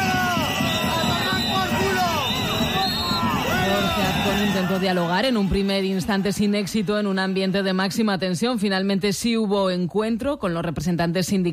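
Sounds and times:
crowd of protesters shouting and booing: 0.0 - 8.0
speech: 4.8 - 11.5.

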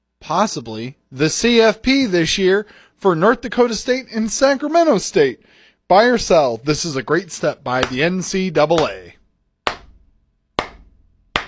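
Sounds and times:
speech: 0.3 - 9.2
slow hand claps from a single clapper: 7.8 - 8.1.

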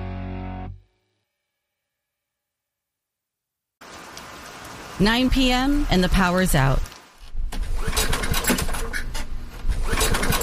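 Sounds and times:
speech: 5.0 - 6.9
portable generator cranking without starting in a basement: 7.5 - 10.4.

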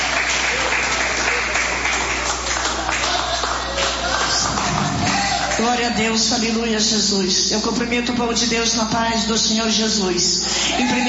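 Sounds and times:
audience clapping loudly: 0.0 - 6.0
speech: 5.6 - 11.0.

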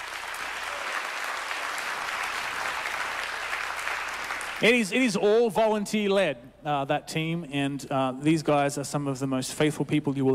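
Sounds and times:
church congregation clapping for its volunteer healing ministry team: 0.0 - 4.9
speech: 4.6 - 10.3.

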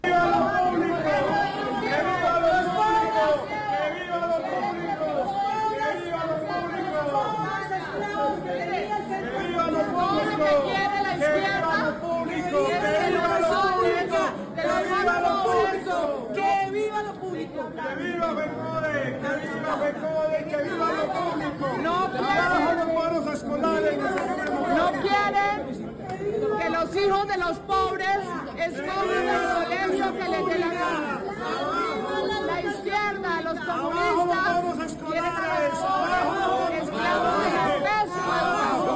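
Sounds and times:
crowd shouting outside the chamber: 0.0 - 38.9.

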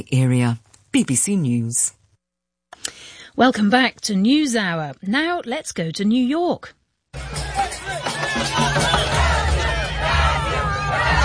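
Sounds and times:
speech: 0.0 - 2.0, 2.8 - 8.1
Brazilian football fans chattering in Times Square: 7.2 - 11.2.

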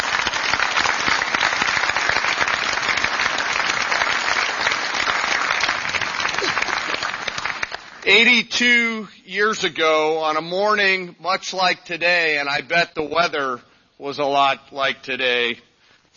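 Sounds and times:
audience applause for veterans: 0.0 - 8.1
speech: 8.1 - 16.1.

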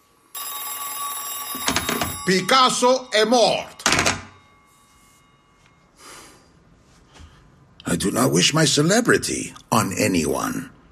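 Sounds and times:
telephone bell ringing: 0.3 - 6.0
speech: 2.3 - 4.1, 8.0 - 10.8.

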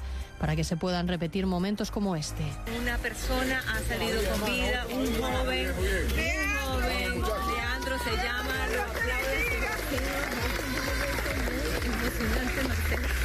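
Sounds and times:
speech: 0.4 - 10.5
applause at rescue scene in San Bernardino Caracas: 6.8 - 13.2.

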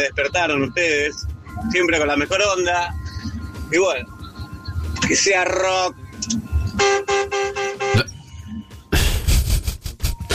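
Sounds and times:
speech: 0.0 - 4.1, 5.0 - 7.1
dense noisy traffic clamor: 0.0 - 9.2
car horns honking: 6.3 - 8.2.

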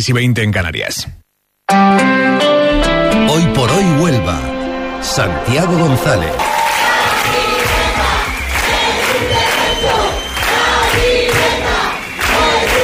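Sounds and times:
speech: 0.0 - 2.6, 3.2 - 6.5
protest crowd chanting a slogan: 5.6 - 12.8.

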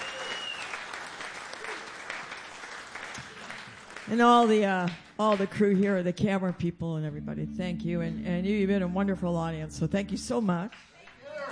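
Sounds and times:
audience applause for the sound crew at a live show: 0.0 - 4.1
speech: 4.1 - 10.9.

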